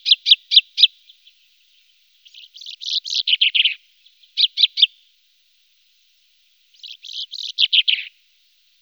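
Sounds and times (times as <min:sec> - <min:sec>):
common chaffinch song in a wetland area at Sissonne: 0:00.0 - 0:05.0, 0:06.7 - 0:08.2.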